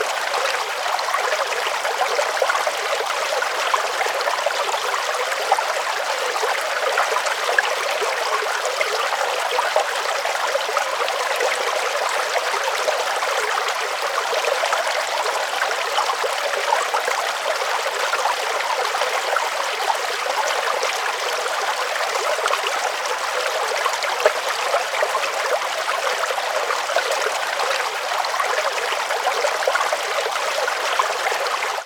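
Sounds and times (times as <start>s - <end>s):
water stream in a forest: 0.0s - 31.8s.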